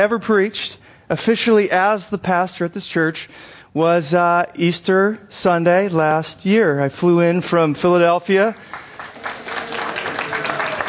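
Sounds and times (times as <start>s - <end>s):
speech: 0.0s - 9.6s
audience applause: 8.6s - 10.8s.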